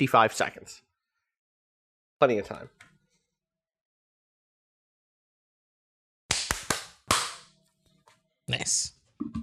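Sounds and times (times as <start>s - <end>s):
speech: 0.0s - 0.9s, 2.2s - 2.8s, 8.5s - 9.4s
group hand clapping on cue: 6.3s - 7.5s.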